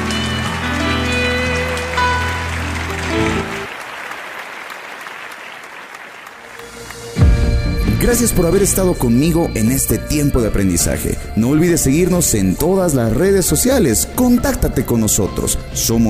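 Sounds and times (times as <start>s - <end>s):
audience applause: 0.0s - 7.3s
speech: 8.1s - 16.0s.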